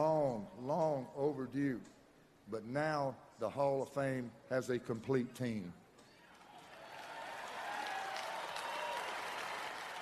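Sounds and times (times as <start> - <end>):
speech: 0.7 - 5.8
large audience applauding at a Hall of Fame ceremony: 6.6 - 9.9.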